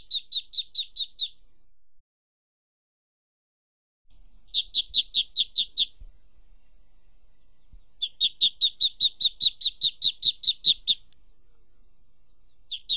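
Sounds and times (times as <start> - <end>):
ducklings peeping: 0.0 - 1.4, 4.1 - 12.9.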